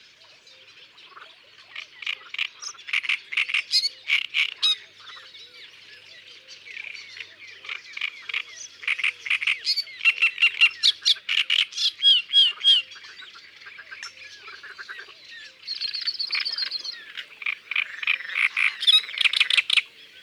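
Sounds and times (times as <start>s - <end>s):
great reed warbler song: 0.0s - 20.2s.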